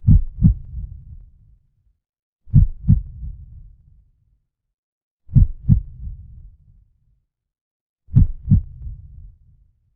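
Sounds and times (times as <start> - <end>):
horror heartbeat: 0.0 - 0.9, 2.5 - 3.3, 5.3 - 6.1, 8.2 - 8.8.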